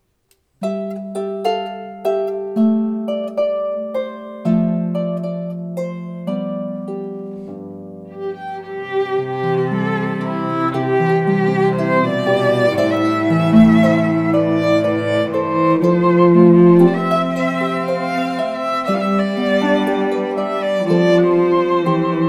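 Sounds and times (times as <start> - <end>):
harp trio playing: 0.6 - 22.2.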